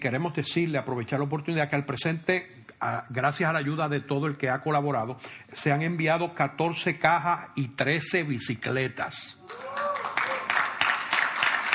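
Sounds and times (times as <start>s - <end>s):
speech: 0.0s - 9.8s
audience applause: 9.4s - 11.7s.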